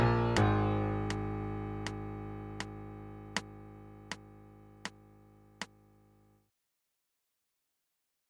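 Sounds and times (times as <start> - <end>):
MIDI A-flat major scale: 0.0 - 6.1.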